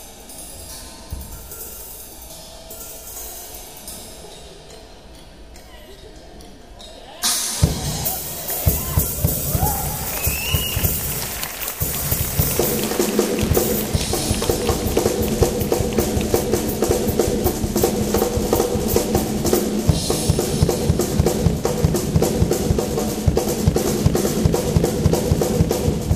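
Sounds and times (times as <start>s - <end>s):
drum solo: 7.2s - 26.1s.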